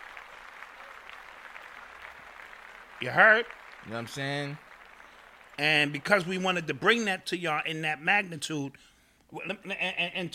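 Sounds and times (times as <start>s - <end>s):
crowd applauding: 0.0s - 7.1s
speech: 3.0s - 4.7s, 5.6s - 10.3s.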